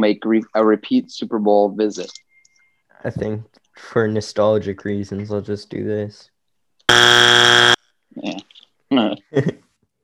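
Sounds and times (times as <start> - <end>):
speech: 0.0 - 2.2, 3.0 - 6.3, 6.9 - 8.4, 9.0 - 9.6
game show buzzer: 6.9 - 7.8.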